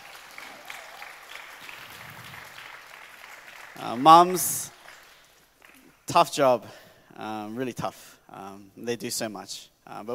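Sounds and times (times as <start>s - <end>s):
audience applause: 0.0s - 5.9s
speech: 3.8s - 4.8s, 6.1s - 10.1s.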